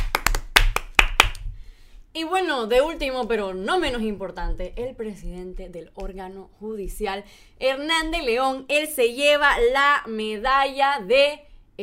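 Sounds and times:
applause: 0.0 - 1.4
speech: 2.2 - 11.8.

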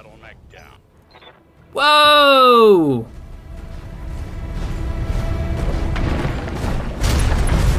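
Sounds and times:
speech: 1.7 - 3.1
mech weapons firing and exploding in a video game: 5.6 - 7.7.

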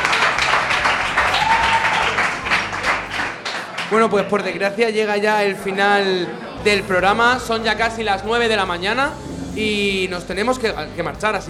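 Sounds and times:
audience applause: 0.0 - 4.4
speech: 3.9 - 11.4.

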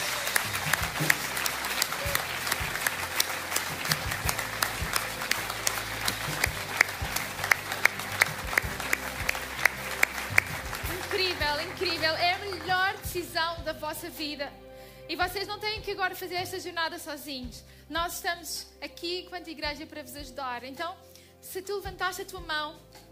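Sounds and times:
audience applause: 0.0 - 13.0
speech: 14.0 - 22.9.

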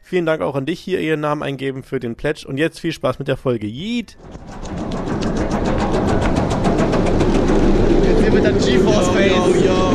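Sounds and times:
speech: 0.1 - 4.6, 8.3 - 9.9
Phoenix roller coaster ride rumble from the rear seats: 4.2 - 9.9
fast regular clatter from the roller coaster track: 4.2 - 9.9.

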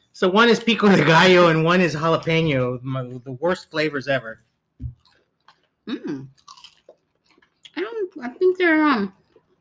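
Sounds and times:
speech: 0.2 - 5.0, 5.9 - 6.4, 7.8 - 9.2
chewing a flavored chip from Mexico: 6.3 - 7.8.

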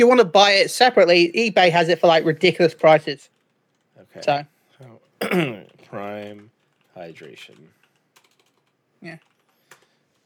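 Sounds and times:
speech: 0.0 - 3.4, 4.0 - 7.8, 9.0 - 9.3
typing on a computer keyboard: 2.9 - 4.0, 5.6 - 10.2.

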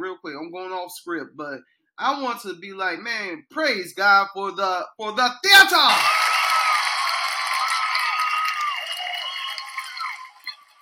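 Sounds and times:
speech: 0.2 - 6.2
whoops and cheers: 5.8 - 10.8
audience applause: 5.9 - 10.8.

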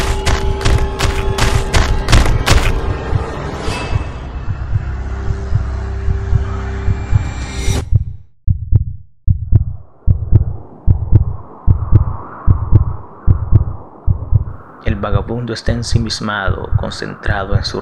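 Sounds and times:
rapid heartbeat: 0.0 - 3.4, 4.0 - 14.6
speech: 15.3 - 17.7.

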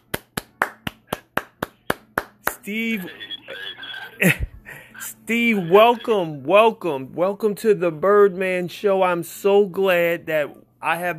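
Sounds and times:
audience clapping to welcome a basketball star guest on a talk show: 0.0 - 2.6
speech: 2.6 - 3.3, 4.2 - 11.1
laughter: 2.7 - 6.2.

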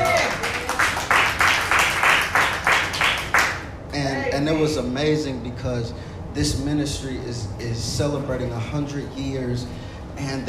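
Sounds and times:
round of applause: 0.0 - 3.7
speech: 4.4 - 10.4.

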